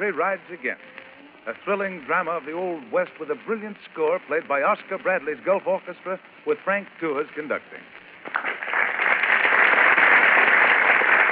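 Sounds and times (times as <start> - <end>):
speech: 0.0 - 8.0
studio audience applause: 8.2 - 11.3.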